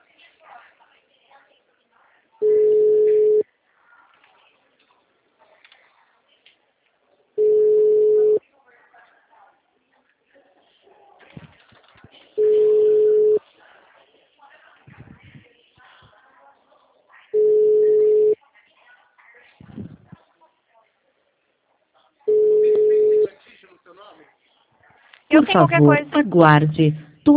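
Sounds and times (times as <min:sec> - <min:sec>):
telephone line beeps while a call is being redialed: 0:02.4 - 0:03.4, 0:07.4 - 0:08.4, 0:12.4 - 0:13.4, 0:17.4 - 0:18.4, 0:22.3 - 0:23.3
speech: 0:25.4 - 0:27.3.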